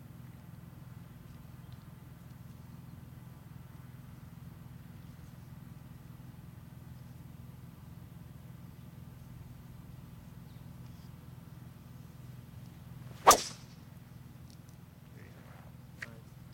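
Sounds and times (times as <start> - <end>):
low steady hum: 0.0 - 16.5
golf club striking a ball on a cut drive during a tournament round: 13.1 - 13.8.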